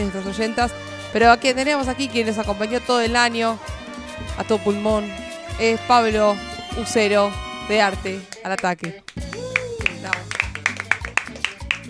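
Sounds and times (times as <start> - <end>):
speech: 0.0 - 3.7, 4.4 - 9.2
audience applauding: 8.3 - 11.8.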